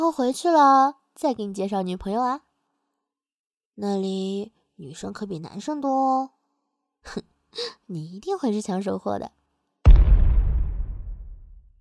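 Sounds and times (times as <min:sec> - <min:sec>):
speech: 0:00.0 - 0:02.5, 0:03.8 - 0:06.4, 0:07.0 - 0:09.4
bomb exploding as enemies step on it: 0:09.9 - 0:11.7.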